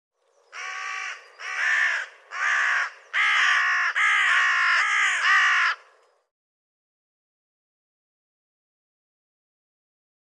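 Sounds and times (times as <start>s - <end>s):
bird giving harsh nasal caw-like calls: 0.5s - 6.0s.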